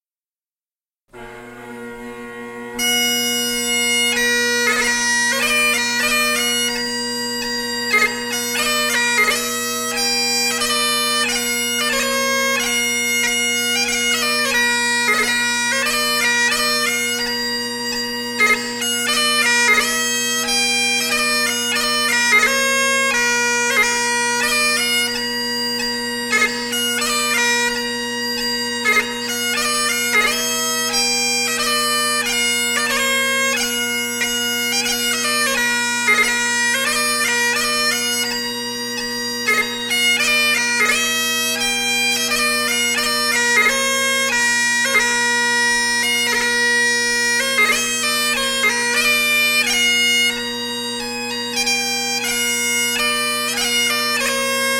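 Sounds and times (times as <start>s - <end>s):
bagpipes: 1.1s - 54.7s.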